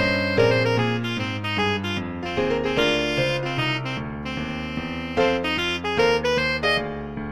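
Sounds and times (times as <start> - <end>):
saxophone playing a shuffle: 0.0 - 7.2.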